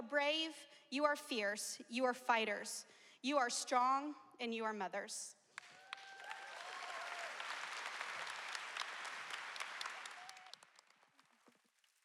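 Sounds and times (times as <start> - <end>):
speech: 0.1 - 5.4
crowd applauding: 5.6 - 11.9
faint whoops: 5.7 - 7.5, 10.0 - 10.6.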